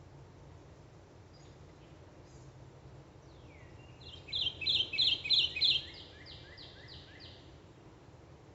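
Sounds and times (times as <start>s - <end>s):
Kentucky Warbler Geothlypis formosa: 3.3s - 7.5s.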